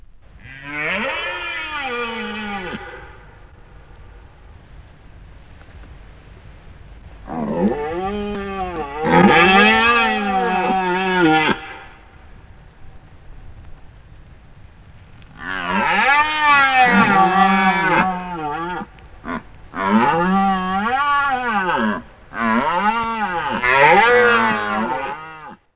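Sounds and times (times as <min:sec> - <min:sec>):
deer: 0:00.4 - 0:03.3, 0:07.2 - 0:12.0, 0:15.3 - 0:25.6.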